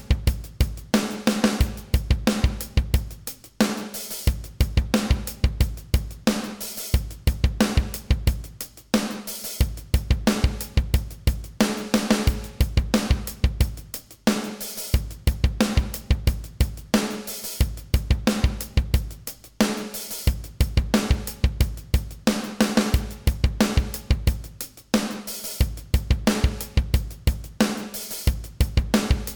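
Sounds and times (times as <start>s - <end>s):
bass: 0.0s - 3.5s, 4.3s - 6.4s, 7.0s - 8.6s, 9.6s - 14.1s, 15.0s - 17.0s, 17.6s - 19.4s, 20.3s - 24.7s, 25.6s - 27.6s, 28.3s - 29.3s.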